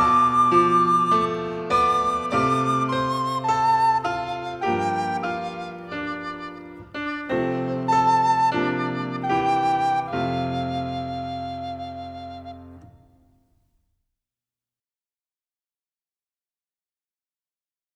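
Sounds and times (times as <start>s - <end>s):
music: 0.0s - 13.7s.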